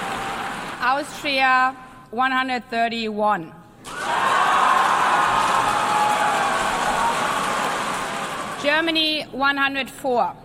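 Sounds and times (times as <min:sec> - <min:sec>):
speech: 0:00.8 - 0:04.4, 0:08.6 - 0:10.4
light hesitant applause: 0:03.9 - 0:08.7.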